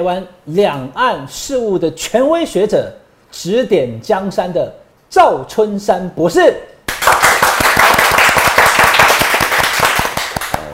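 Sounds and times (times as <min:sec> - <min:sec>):
speech: 0:00.0 - 0:06.7
thunderous applause: 0:07.0 - 0:10.6.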